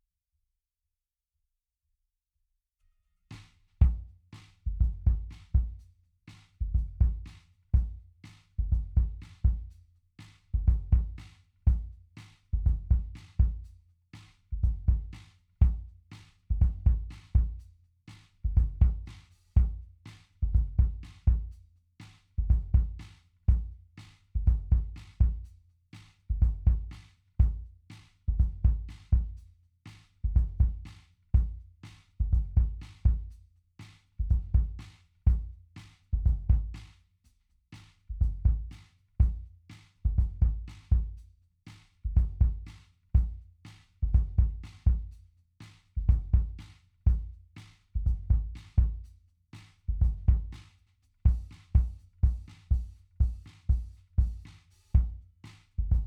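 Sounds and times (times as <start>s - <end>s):
kick drum: 3.8s - 5.8s, 6.6s - 9.8s, 10.5s - 17.6s, 18.4s - 21.6s, 22.4s - 29.5s, 30.2s - 33.4s, 34.2s - 36.9s, 38.1s - 41.3s, 42.0s - 45.2s, 45.9s - 49.2s, 49.8s - 56.0s.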